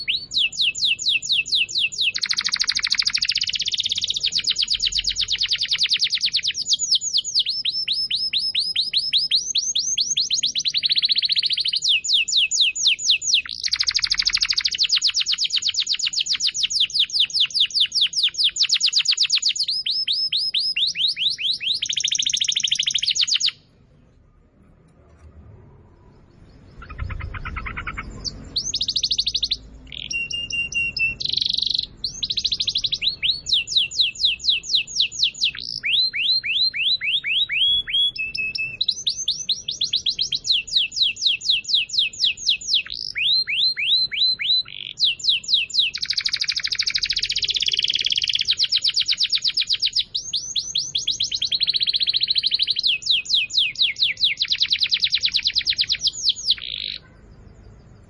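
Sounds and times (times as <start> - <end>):
Atlantic canary song: 0.0 - 58.0.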